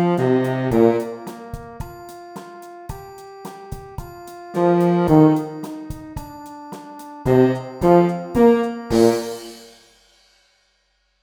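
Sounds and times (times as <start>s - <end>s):
tuba: 0.0s - 1.8s, 4.5s - 5.9s, 7.3s - 9.8s.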